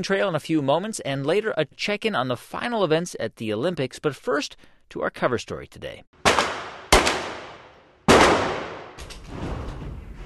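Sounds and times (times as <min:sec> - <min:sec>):
speech: 0:00.0 - 0:06.3
gunshots at the Blue Ridge Arsenal shooting range in Virginia: 0:06.2 - 0:09.0.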